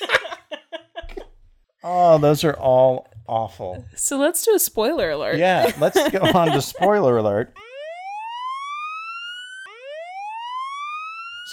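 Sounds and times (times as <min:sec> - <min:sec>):
laughter: 0:00.0 - 0:01.3, 0:05.4 - 0:07.5
speech: 0:01.8 - 0:07.6
alarm going off: 0:07.6 - 0:11.5.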